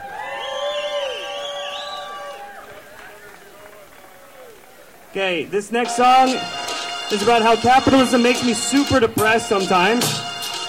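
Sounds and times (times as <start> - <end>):
audience applause: 0.0 - 5.1
speech: 5.2 - 10.3.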